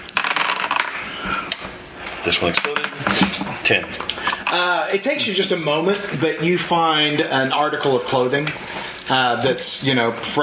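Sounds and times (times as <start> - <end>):
six-sided dice clattering on a hard surface: 0.1 - 1.0
speech: 2.2 - 10.4.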